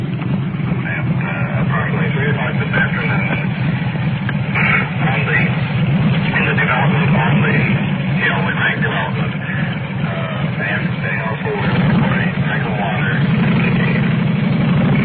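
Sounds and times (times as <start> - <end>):
engine motor idling: 0.0 - 15.0
voices: 0.5 - 14.2.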